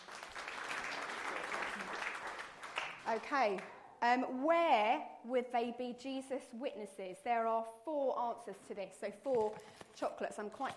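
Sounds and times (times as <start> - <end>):
group clapping for a child: 0.0 - 3.8
speech: 3.1 - 10.7.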